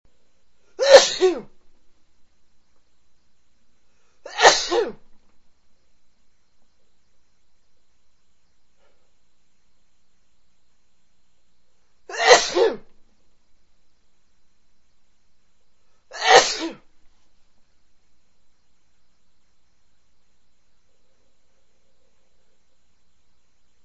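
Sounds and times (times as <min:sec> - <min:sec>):
man sneezing big sneezes: 0:00.8 - 0:01.5, 0:04.3 - 0:05.0, 0:12.1 - 0:12.9, 0:16.1 - 0:16.8.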